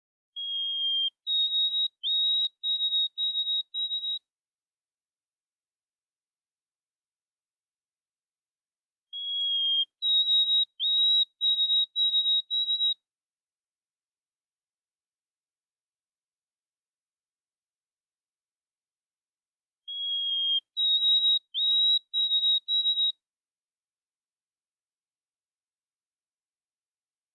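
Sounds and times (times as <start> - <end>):
chirp: 0.4 - 4.2, 9.2 - 13.0, 19.9 - 23.2.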